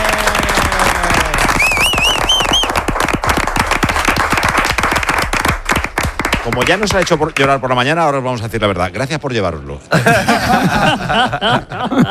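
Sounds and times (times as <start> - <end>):
studio applause: 0.0 - 7.9
speech: 6.5 - 12.1
laughter: 9.9 - 12.1.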